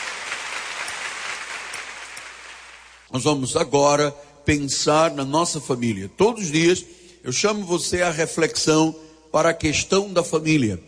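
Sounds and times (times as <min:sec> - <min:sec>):
audience applause: 0:00.0 - 0:03.1
speech: 0:03.1 - 0:10.8.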